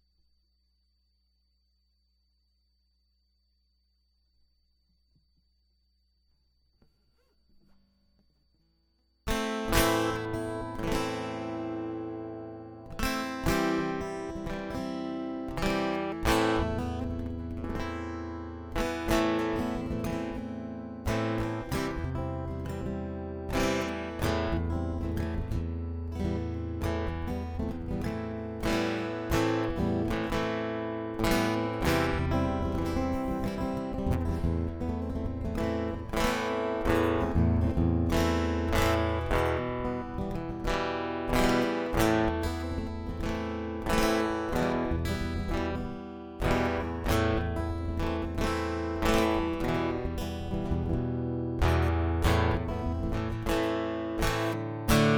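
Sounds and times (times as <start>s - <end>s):
guitar loop: 9.3s - 55.1s.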